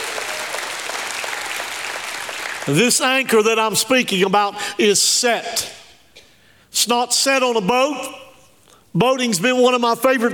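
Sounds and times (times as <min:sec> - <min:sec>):
audience applause: 0:00.0 - 0:02.8
speech: 0:02.6 - 0:05.8, 0:06.8 - 0:08.2, 0:08.9 - 0:10.3.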